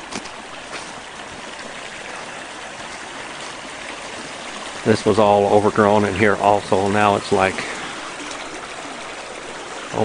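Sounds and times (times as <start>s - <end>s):
creek water flowing: 0.0s - 10.0s
speech: 4.8s - 7.7s.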